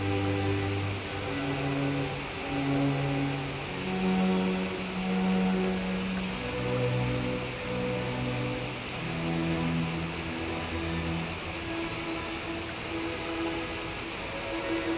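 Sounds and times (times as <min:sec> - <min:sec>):
waterfall: 0:00.0 - 0:14.9.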